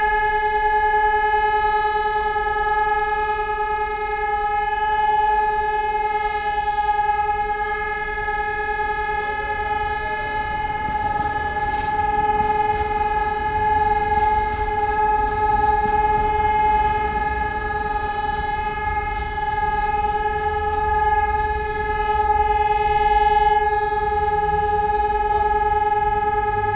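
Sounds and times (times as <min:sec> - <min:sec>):
sirens: 0:00.0 - 0:26.7.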